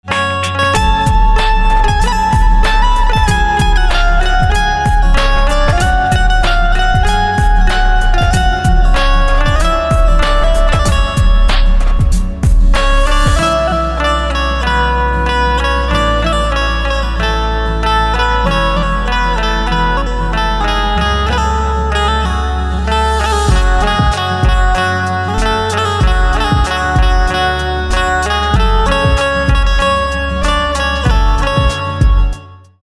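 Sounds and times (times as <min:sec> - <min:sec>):
banjo: 0:00.0 - 0:32.7.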